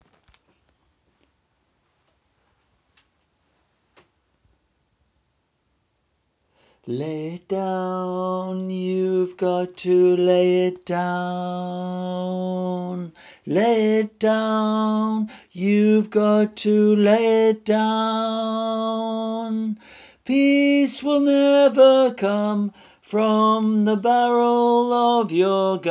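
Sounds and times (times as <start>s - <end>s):
tenor singing: 6.9s - 25.8s.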